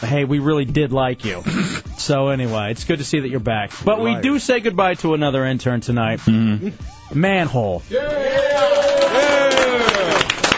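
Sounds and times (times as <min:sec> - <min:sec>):
speech: 0:00.0 - 0:08.8
people cheering: 0:07.9 - 0:10.5.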